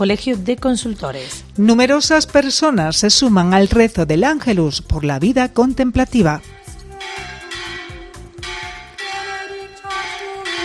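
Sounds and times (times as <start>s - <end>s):
speech: 0.0s - 6.6s
church bells pealing: 7.0s - 10.6s.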